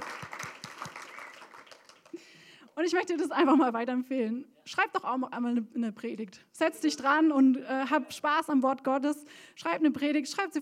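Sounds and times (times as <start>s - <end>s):
audience applause: 0.0s - 2.2s
speech: 2.8s - 10.6s.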